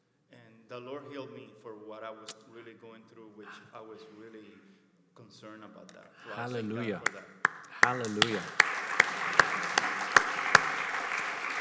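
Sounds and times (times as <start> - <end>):
faint hiss: 0.0 - 11.5
speech: 0.7 - 8.9
hand claps: 7.0 - 11.5.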